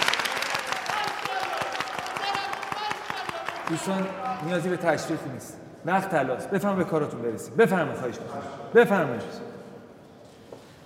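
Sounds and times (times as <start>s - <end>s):
audience applauding in honour of the minister: 0.0s - 5.2s
speech: 3.7s - 9.5s.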